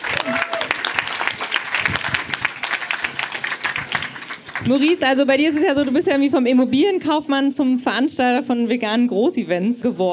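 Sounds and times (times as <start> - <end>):
audience applause: 0.0 - 6.0
speech: 4.6 - 10.1.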